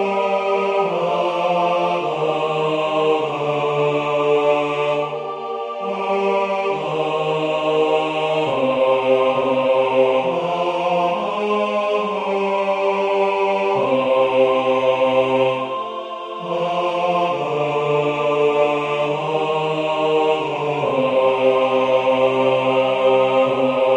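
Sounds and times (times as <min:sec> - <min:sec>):
bass voice singing a choral piece: 0:00.0 - 0:23.9.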